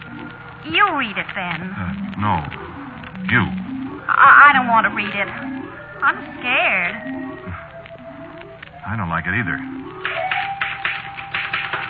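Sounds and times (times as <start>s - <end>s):
speech: 0.6s - 7.5s, 8.8s - 10.2s
typewriter typing: 10.0s - 11.8s.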